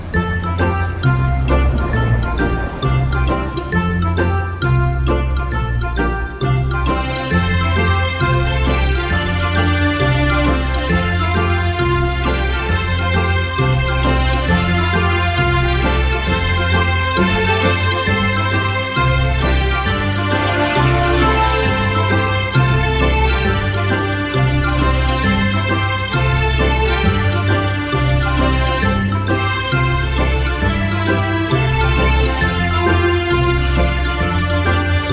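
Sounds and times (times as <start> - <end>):
instrumental music: 0.1 - 35.1.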